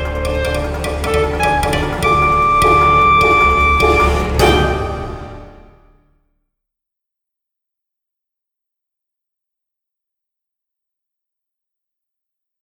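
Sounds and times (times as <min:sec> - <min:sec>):
saxophone: 0:00.0 - 0:05.7.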